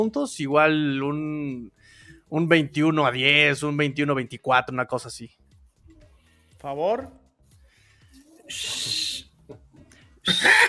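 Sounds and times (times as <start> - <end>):
speech: 0.0 - 5.4, 6.6 - 7.2, 8.5 - 9.6, 10.3 - 10.6
human whistle: 8.5 - 9.4.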